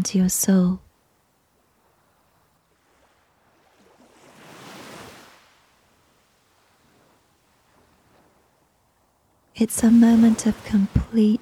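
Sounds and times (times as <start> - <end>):
speech: 0.0 - 0.9, 9.6 - 11.4
ocean wave washing: 2.8 - 8.4, 9.6 - 11.4.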